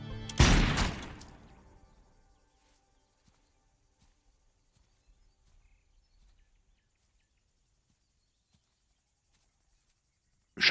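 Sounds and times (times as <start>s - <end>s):
rifle shot during aimed shooting practice: 0.3s - 1.6s.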